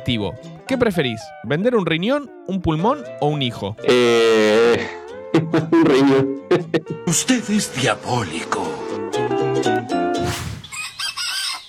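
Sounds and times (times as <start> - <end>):
speech: 0.1 - 8.8, 9.6 - 9.9
other fowl clucking and chattering: 10.6 - 11.6
rooster crowing on a farm: 10.6 - 11.6.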